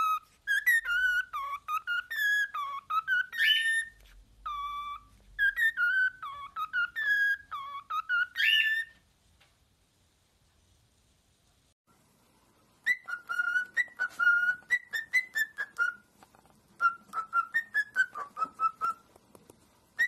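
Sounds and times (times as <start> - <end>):
Cockatiel whistling a melodic tune: 0.0 - 9.0, 12.8 - 16.1, 16.8 - 19.0.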